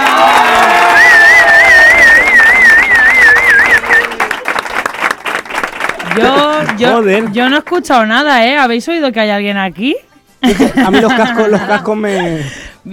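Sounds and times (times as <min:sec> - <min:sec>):
crowd of young people cheering and clapping: 0:00.0 - 0:07.7
shrill warbling whistle: 0:01.0 - 0:04.1
laughter: 0:06.0 - 0:07.1, 0:10.4 - 0:12.5
speech: 0:06.2 - 0:12.9.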